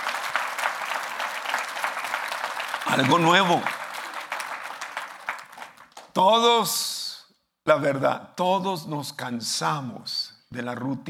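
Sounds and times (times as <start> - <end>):
audience applauding: 0.0 - 6.2
speech: 2.9 - 3.8, 6.2 - 7.0, 7.7 - 11.0.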